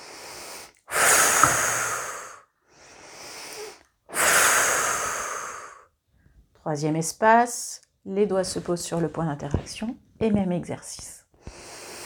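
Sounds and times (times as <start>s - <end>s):
slow deep breathing during a relaxation exercise: 0.0s - 6.4s
speech: 6.6s - 11.2s.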